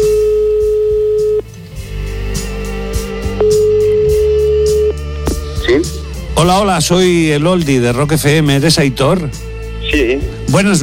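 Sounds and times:
telephone ringback tone: 0:00.0 - 0:01.4, 0:03.4 - 0:05.0
music: 0:00.0 - 0:10.8
speech: 0:06.4 - 0:10.8.

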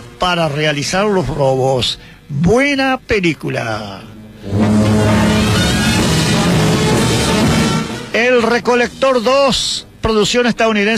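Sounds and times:
speech: 0:00.2 - 0:04.6, 0:08.2 - 0:10.9
car engine revving during a car chase: 0:04.4 - 0:08.1.

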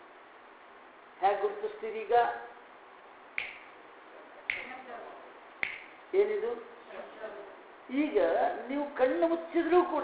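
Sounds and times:
faint hiss: 0:00.0 - 0:10.0
speech: 0:01.2 - 0:02.5, 0:06.1 - 0:06.7, 0:07.9 - 0:10.0
finger snaps: 0:03.4 - 0:03.7, 0:04.5 - 0:04.7, 0:05.6 - 0:06.0.

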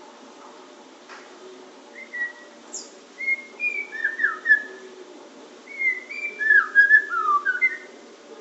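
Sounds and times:
Oriental magpie-robin singing: 0:02.0 - 0:04.8, 0:05.7 - 0:08.0.

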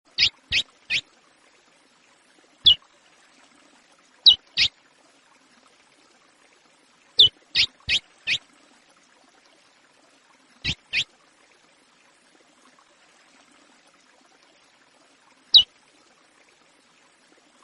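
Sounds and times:
chestnut-bellied seed finch singing: 0:00.1 - 0:01.0, 0:04.2 - 0:04.7, 0:07.2 - 0:08.4, 0:10.6 - 0:11.0.

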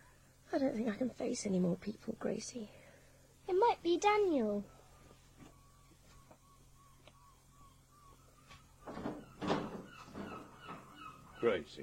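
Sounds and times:
low steady hum: 0:00.0 - 0:11.8
speech: 0:00.5 - 0:02.8, 0:03.5 - 0:04.8, 0:11.4 - 0:11.8
door opening with clattering and scraping: 0:08.8 - 0:11.2.

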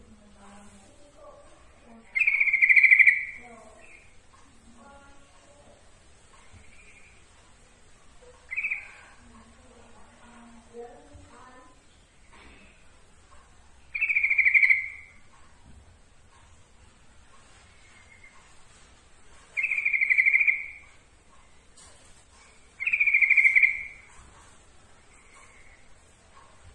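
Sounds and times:
yellow-vented bulbul giving bright notes: 0:01.9 - 0:04.7, 0:06.5 - 0:07.3, 0:08.2 - 0:09.2, 0:13.9 - 0:15.4, 0:19.5 - 0:21.6, 0:22.5 - 0:24.2.

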